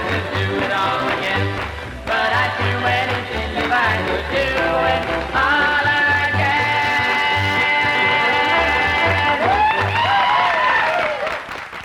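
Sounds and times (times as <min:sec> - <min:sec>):
hand claps in a hillbilly stomp song: 0:00.0 - 0:06.4, 0:10.9 - 0:11.8
sung and instrumental tones: 0:00.0 - 0:11.0.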